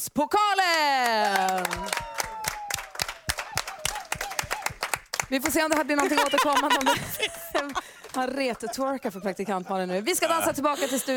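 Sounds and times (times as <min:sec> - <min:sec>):
speech: 0:00.0 - 0:02.0, 0:05.3 - 0:11.1
small crowd clapping: 0:00.6 - 0:08.7
high wavering cheer or whistle: 0:01.5 - 0:04.8
laughter: 0:05.9 - 0:11.1.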